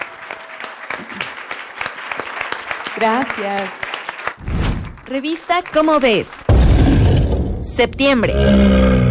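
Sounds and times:
audience applause: 0:00.0 - 0:06.5
speech: 0:03.0 - 0:03.8, 0:04.4 - 0:06.4, 0:07.8 - 0:09.0.

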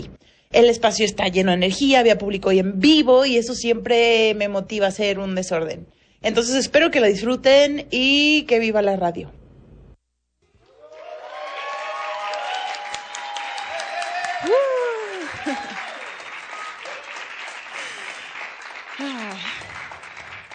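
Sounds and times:
speech: 0:00.0 - 0:09.4
live audience applause: 0:10.7 - 0:20.5.

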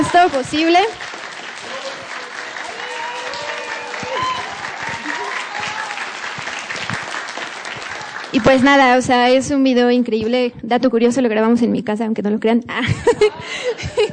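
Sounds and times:
audience applause: 0:00.0 - 0:09.0
speech: 0:00.1 - 0:01.1, 0:08.4 - 0:14.1
laughter: 0:12.8 - 0:14.1.

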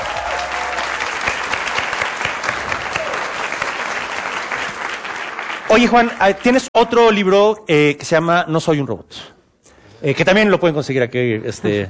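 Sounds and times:
theater audience applause: 0:00.0 - 0:06.7
speech: 0:05.7 - 0:09.4, 0:10.0 - 0:11.8.

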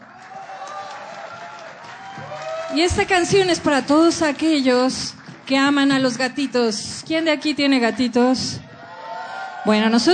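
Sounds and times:
audience applause: 0:00.0 - 0:06.4
speech: 0:02.2 - 0:08.7, 0:09.6 - 0:10.1.

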